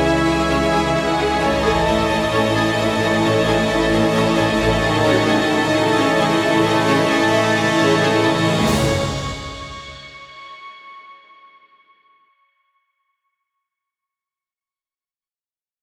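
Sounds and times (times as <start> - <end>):
orchestral music: 0.0 - 10.5.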